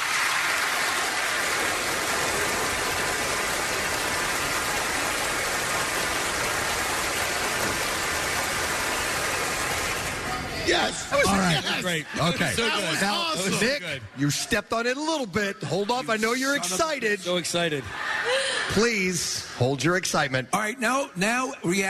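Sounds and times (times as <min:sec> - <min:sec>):
polite audience applause: 0:00.0 - 0:13.0
speech: 0:10.7 - 0:21.8.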